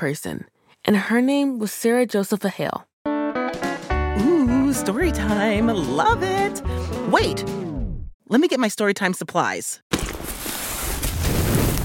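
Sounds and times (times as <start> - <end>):
speech: 0.0 - 2.9, 3.5 - 7.6, 8.3 - 9.8
crackling fire: 10.4 - 11.8.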